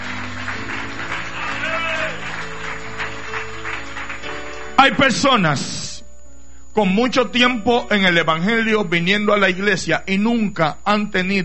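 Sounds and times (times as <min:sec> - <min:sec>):
loud applause from church audience: 0:00.0 - 0:05.0
speech: 0:04.8 - 0:05.8, 0:06.8 - 0:11.4.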